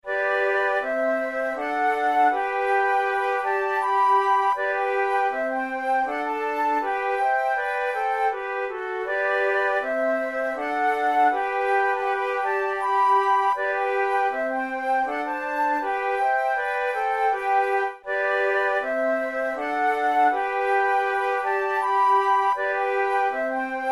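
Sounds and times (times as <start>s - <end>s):
musical trio: 0.1s - 23.9s.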